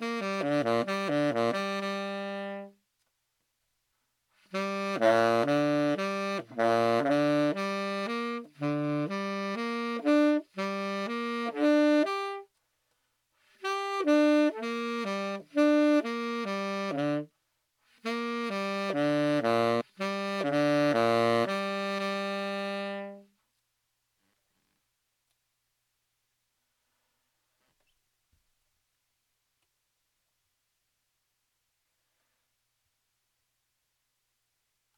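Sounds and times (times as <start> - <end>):
saxophone playing arpeggios in C major and A minor: 0.0 - 2.8, 4.4 - 12.5, 13.5 - 17.3, 17.9 - 23.3.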